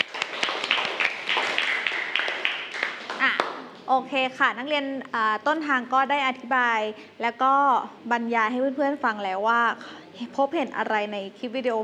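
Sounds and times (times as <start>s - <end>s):
classmates clapping: 0.0s - 3.9s
speech: 3.9s - 11.8s.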